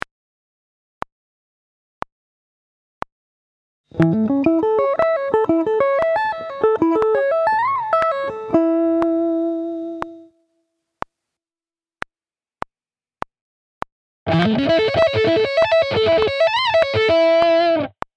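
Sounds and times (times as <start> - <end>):
sweep-picked guitar: 4.0 - 10.3, 14.3 - 18.0.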